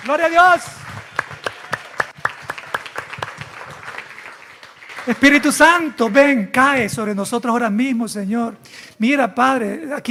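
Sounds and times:
speech: 0:00.0 - 0:00.8, 0:05.0 - 0:10.0
audience applauding: 0:00.0 - 0:06.5.

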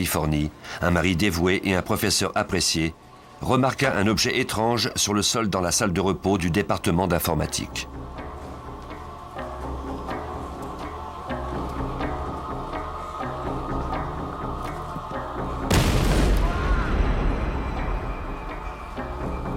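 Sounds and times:
speech: 0:00.0 - 0:08.2
continuous musical background: 0:00.0 - 0:19.5
bomb exploding in a university computer science department break room: 0:15.7 - 0:17.8.

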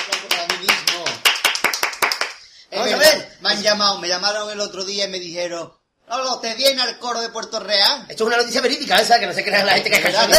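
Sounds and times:
applause: 0:00.0 - 0:02.5
speech: 0:03.5 - 0:10.3.

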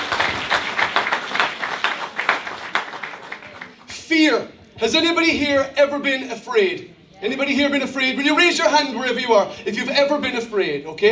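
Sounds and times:
audience applause: 0:00.0 - 0:03.9
speech: 0:04.4 - 0:11.1.

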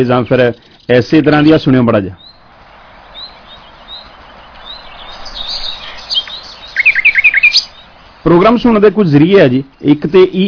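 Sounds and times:
speech: 0:00.0 - 0:02.3, 0:08.2 - 0:10.4
sparrows chirping: 0:00.0 - 0:10.4
steady hiss: 0:00.1 - 0:10.4.

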